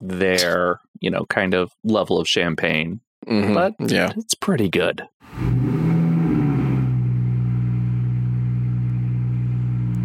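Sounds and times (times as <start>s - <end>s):
speech: 0.0s - 5.9s
loud car engine starting and revving: 5.2s - 10.0s.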